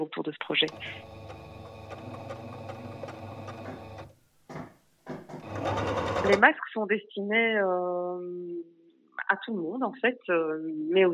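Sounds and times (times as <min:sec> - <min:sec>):
speech: 0:00.0 - 0:01.3, 0:06.3 - 0:11.1
sewing machine stitching fabric: 0:00.6 - 0:04.2, 0:05.3 - 0:06.4.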